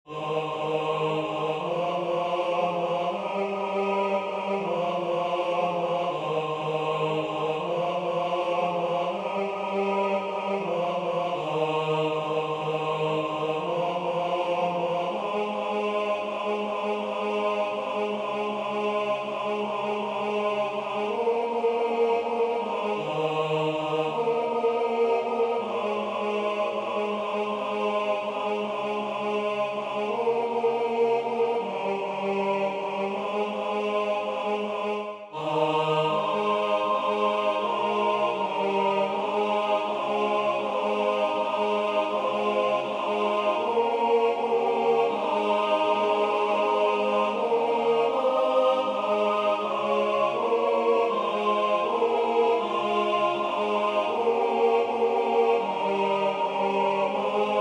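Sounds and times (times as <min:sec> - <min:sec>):
tenor singing: 0:00.1 - 0:57.6.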